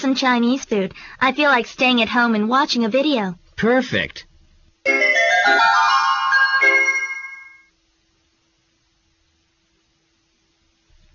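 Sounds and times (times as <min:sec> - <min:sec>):
speech: 0:00.0 - 0:05.7
melodic electronic alarm clock chiming a tune: 0:04.9 - 0:07.7.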